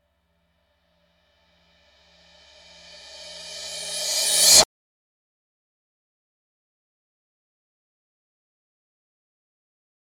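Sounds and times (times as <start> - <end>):
reverse cymbal with reverb: 1.8 - 4.6.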